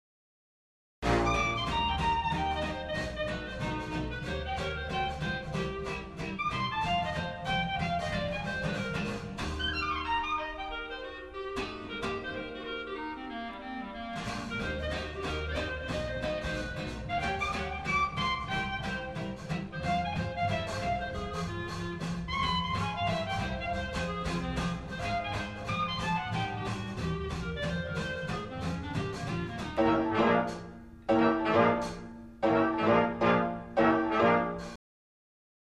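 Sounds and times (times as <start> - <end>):
musical solo: 1.0 - 34.8.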